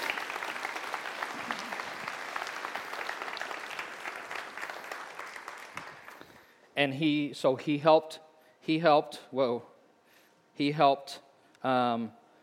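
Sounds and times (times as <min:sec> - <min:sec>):
audience applause: 0:00.0 - 0:06.2
speech: 0:06.8 - 0:09.7, 0:10.6 - 0:12.2.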